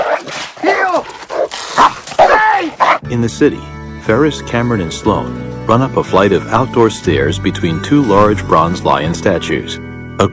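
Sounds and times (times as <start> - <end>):
dog barking and whining while chasing a person across a backyard: 0.0 - 3.0
speech: 3.1 - 10.3.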